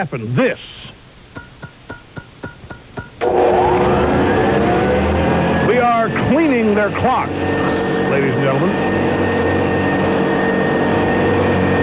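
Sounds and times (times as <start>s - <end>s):
speech: 0.0s - 0.9s, 6.4s - 9.1s
vacuum cleaner running: 3.2s - 11.8s.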